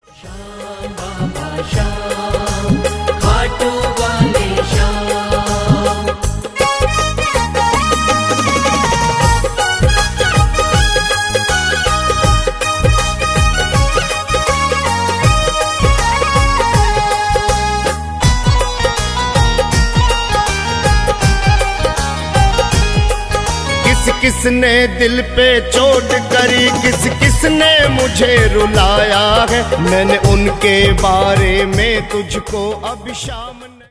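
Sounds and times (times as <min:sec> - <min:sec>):
Hindu devotional bhajan song: 0:00.0 - 0:33.8.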